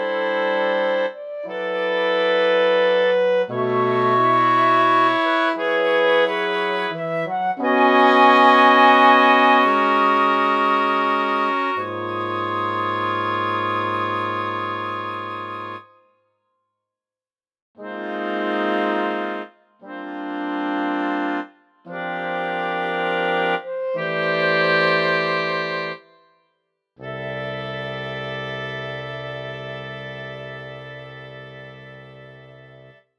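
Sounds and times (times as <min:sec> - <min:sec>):
five instruments playing fifths: 0:00.2 - 0:15.9, 0:17.8 - 0:26.1.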